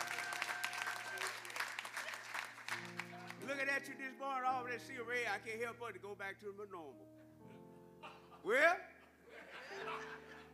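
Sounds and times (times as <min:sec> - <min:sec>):
audience cheering with scattered shouts and whoops: 0:00.0 - 0:02.9
audience clapping: 0:00.0 - 0:03.5
speech: 0:03.6 - 0:07.2, 0:08.4 - 0:08.9, 0:09.8 - 0:10.5
laughter: 0:08.0 - 0:10.5.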